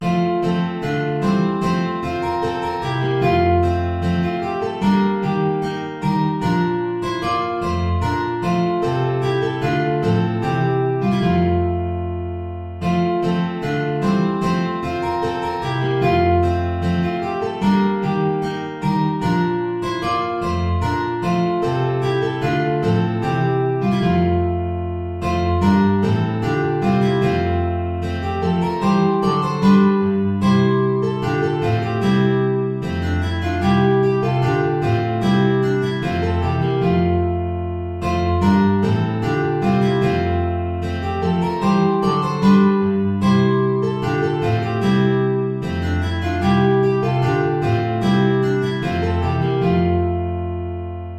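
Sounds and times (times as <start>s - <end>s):
four guitars playing ballet piece: 0.0s - 51.1s.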